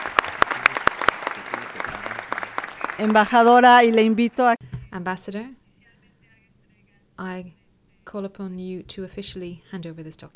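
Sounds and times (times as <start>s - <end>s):
audience applause: 0.0s - 4.5s
speech: 3.0s - 5.6s, 7.2s - 10.3s.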